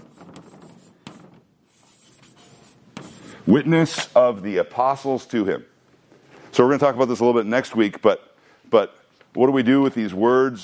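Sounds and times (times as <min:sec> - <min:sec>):
pen scratching out a word by hand: 0:00.0 - 0:03.4
speech: 0:03.5 - 0:05.7, 0:06.6 - 0:10.6.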